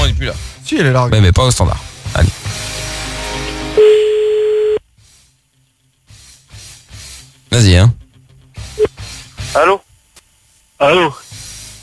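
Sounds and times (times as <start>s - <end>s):
music: 0.0s - 11.8s
speech: 0.2s - 2.6s, 7.5s - 8.0s, 9.5s - 9.9s, 10.8s - 11.2s
telephone line beep while a call is placed: 3.8s - 4.8s.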